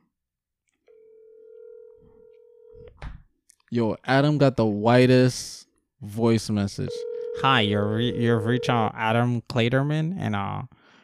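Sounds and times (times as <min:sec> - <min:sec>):
phone ringing tone: 0:00.9 - 0:02.8, 0:06.9 - 0:08.8
speech: 0:03.7 - 0:10.8.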